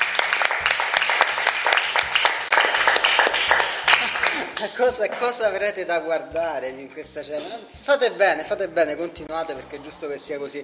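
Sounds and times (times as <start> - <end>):
audience clapping at a dinner gathering: 0.0 - 4.8
speech: 4.6 - 10.6.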